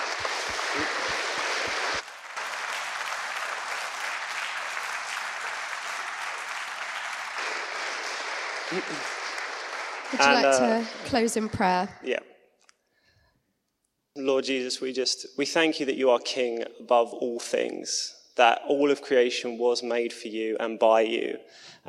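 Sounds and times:
round of applause: 0:00.0 - 0:11.9
speech: 0:08.7 - 0:09.1, 0:10.1 - 0:12.3, 0:14.2 - 0:21.8.

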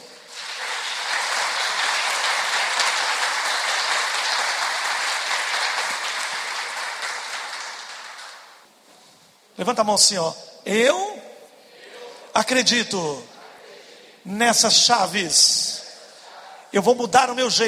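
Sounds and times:
large crowd applauding: 0:00.0 - 0:08.6
speech: 0:09.6 - 0:11.2, 0:12.4 - 0:13.3, 0:14.2 - 0:15.6, 0:16.7 - 0:17.6.

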